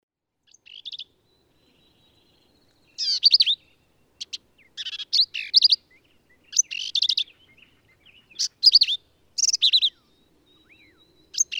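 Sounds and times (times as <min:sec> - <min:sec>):
male black-capped vireo singing sharp slurred notes in Texas hill country: 0:00.5 - 0:11.5.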